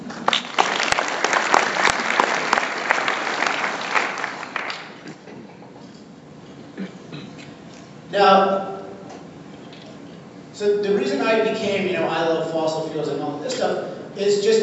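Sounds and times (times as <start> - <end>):
audience round of applause: 0.0 - 5.1
speech: 8.2 - 8.7, 10.6 - 14.6.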